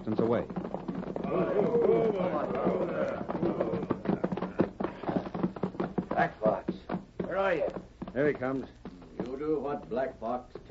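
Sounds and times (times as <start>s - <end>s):
speech: 0.0s - 0.7s, 1.3s - 3.9s, 6.2s - 6.6s, 7.4s - 8.8s, 9.4s - 10.7s
horses' hooves clattering as riders rein in: 0.0s - 10.7s
voices calling out: 1.0s - 7.9s.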